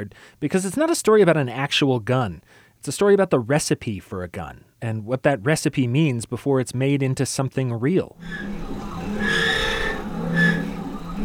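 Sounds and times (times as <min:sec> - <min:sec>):
speech: 0:00.0 - 0:08.8
CNC milling machine cutting metal, milling a pocket in an AR-15: 0:08.2 - 0:11.2
low mechanical hum: 0:08.2 - 0:11.2.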